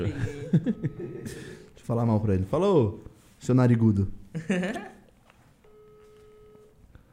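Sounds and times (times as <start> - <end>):
speech: 0.0 - 1.0, 1.9 - 4.9
laughter: 0.0 - 1.6, 4.3 - 5.1
unanswered phone call ringback tone: 0.0 - 1.7, 5.6 - 6.8
low hum: 0.0 - 7.1.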